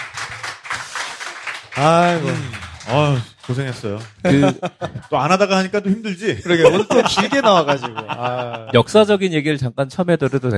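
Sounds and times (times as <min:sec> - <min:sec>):
applause: 0:00.0 - 0:05.1
speech: 0:01.8 - 0:10.5
laughter: 0:02.0 - 0:09.0.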